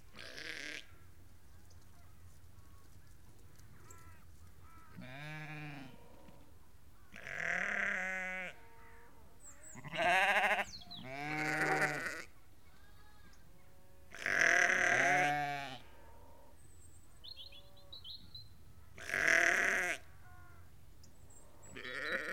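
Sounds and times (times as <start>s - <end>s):
flock of ewes and lambs bleating: 0.1s - 0.9s, 3.8s - 6.4s, 7.1s - 16.0s, 19.0s - 20.6s, 21.6s - 22.3s.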